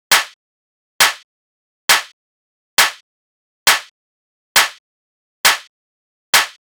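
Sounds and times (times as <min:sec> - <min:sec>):
techno clap loop at 135 BPM: 0:00.1 - 0:00.4, 0:01.0 - 0:01.2, 0:01.9 - 0:02.1, 0:02.8 - 0:03.0, 0:03.7 - 0:03.9, 0:04.6 - 0:04.8, 0:05.5 - 0:05.7, 0:06.4 - 0:06.6.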